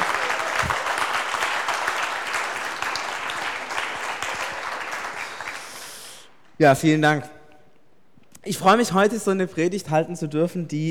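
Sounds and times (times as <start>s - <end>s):
loud sustained applause from a large crowd: 0.0s - 6.2s
speech: 6.6s - 7.4s, 8.4s - 10.9s.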